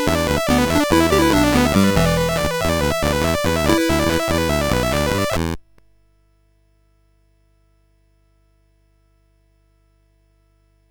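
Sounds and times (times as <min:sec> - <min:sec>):
chiptune music on a SID CSG 8580R5 chip: 0:00.0 - 0:05.6.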